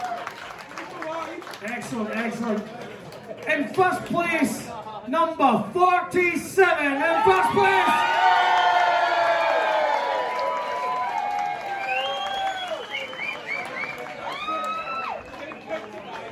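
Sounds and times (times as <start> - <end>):
crowd cheering and applauding: 0.0 - 3.6, 7.0 - 16.2
speech: 1.6 - 8.4.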